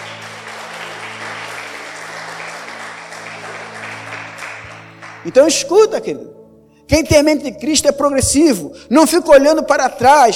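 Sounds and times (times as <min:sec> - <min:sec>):
audience applauding: 0:00.0 - 0:05.6
speech: 0:05.2 - 0:10.3.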